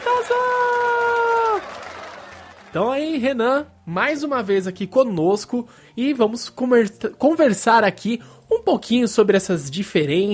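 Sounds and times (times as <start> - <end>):
applause: 0.0 - 3.2
cheering: 0.0 - 3.2
speech: 2.8 - 10.3.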